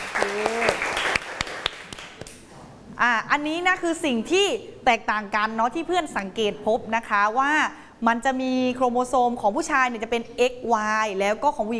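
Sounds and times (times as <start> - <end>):
applause: 0.0 - 2.4
speech: 3.0 - 11.7.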